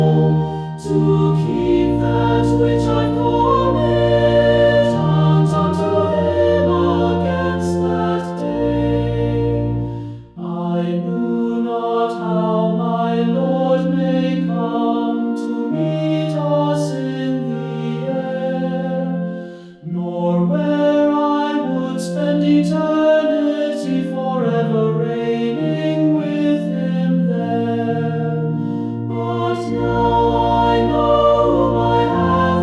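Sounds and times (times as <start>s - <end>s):
choir singing a hymn: 0.0s - 32.6s
organ: 0.0s - 32.6s.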